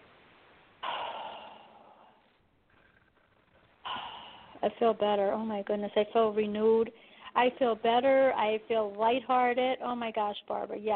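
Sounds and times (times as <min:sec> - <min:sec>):
deep breath during a guided breathing exercise: 0:00.8 - 0:03.1, 0:03.8 - 0:04.6, 0:07.0 - 0:07.4
speech: 0:04.6 - 0:10.9.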